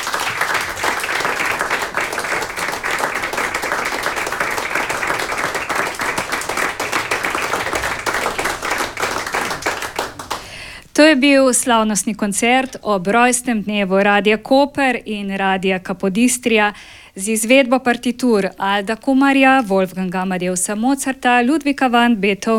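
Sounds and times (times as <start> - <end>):
audience applause for an orchestra: 0.0 - 10.6
speech: 11.1 - 22.5.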